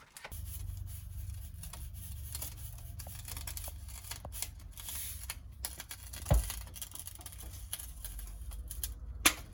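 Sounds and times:
fried eggs sizzling: 0.3s - 9.5s.

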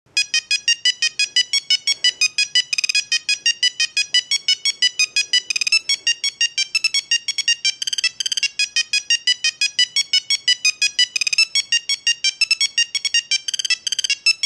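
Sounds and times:
old mobile phone sounds: 0.1s - 14.4s.

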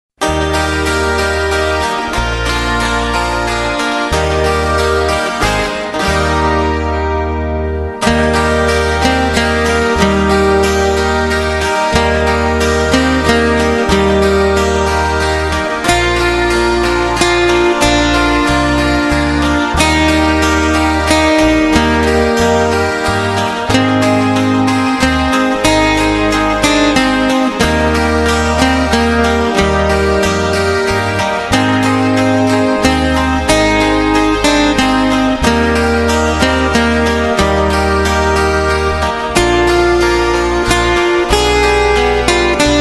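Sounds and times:
Christmas music: 0.2s - 42.7s.

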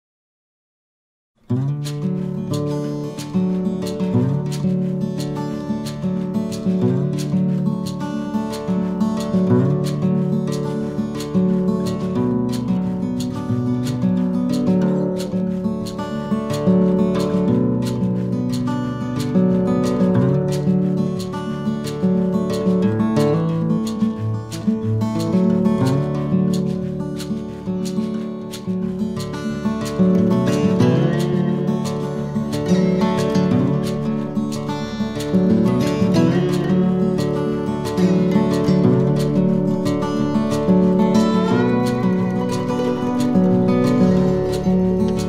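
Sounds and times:
western music: 1.5s - 45.2s.

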